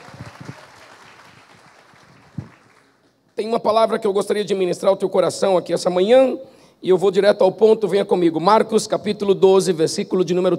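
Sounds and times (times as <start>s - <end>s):
audience applause: 0.0s - 3.0s
speech: 3.4s - 10.5s.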